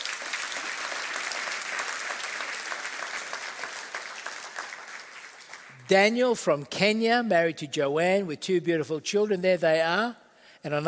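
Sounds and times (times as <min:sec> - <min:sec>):
warm round of applause: 0:00.0 - 0:05.9
speech: 0:05.9 - 0:10.8.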